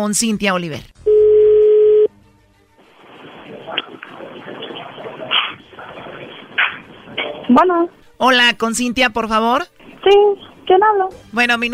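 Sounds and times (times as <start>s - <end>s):
speech: 0.0s - 1.0s, 7.5s - 11.7s
phone call connecting beep: 1.1s - 2.1s
thin hissy phone line: 2.9s - 7.9s
faint rustles and bumps on the phone line: 3.0s - 8.2s.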